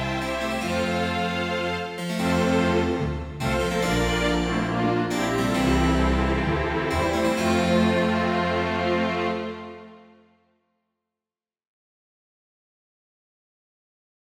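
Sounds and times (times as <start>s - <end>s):
string quintet with harpsichord: 0.0s - 10.2s.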